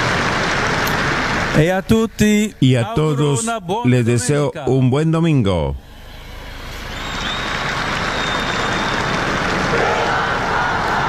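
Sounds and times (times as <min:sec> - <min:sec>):
large crowd applauding: 0:00.0 - 0:02.5, 0:06.0 - 0:11.0
speech: 0:01.6 - 0:05.9
young people shouting a cheer: 0:06.0 - 0:11.0.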